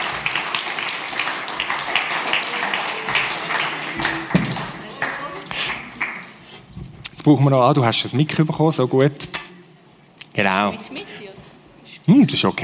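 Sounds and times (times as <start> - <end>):
audience applause: 0.0 - 6.5
scattered voices in the crowd: 2.4 - 5.7
speech: 7.2 - 9.4, 10.4 - 11.0, 12.2 - 12.6.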